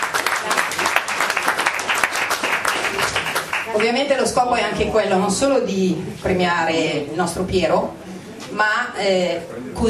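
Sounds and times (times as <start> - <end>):
audience applause: 0.0 - 3.9
speech: 3.8 - 9.8.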